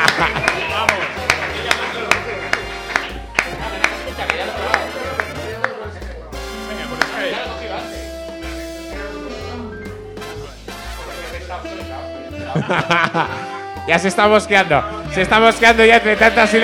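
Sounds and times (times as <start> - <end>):
laughter: 0.0 - 2.6, 3.5 - 5.3, 12.4 - 13.8
crowd clapping: 0.0 - 6.2, 6.8 - 7.5
speech: 12.7 - 16.6.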